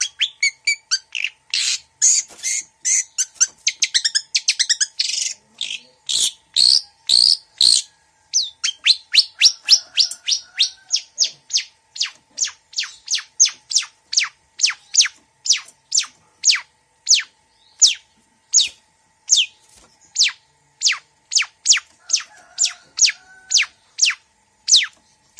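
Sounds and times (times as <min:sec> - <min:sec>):
female long-tailed shrike singing vigorously: 0:00.0 - 0:25.3.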